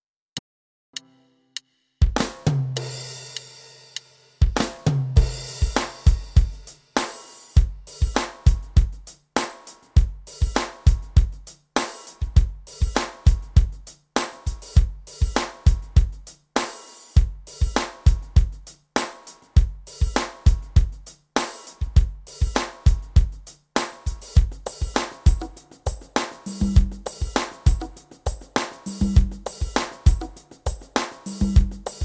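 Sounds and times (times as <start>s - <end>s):
music beat: 1.0s - 32.0s.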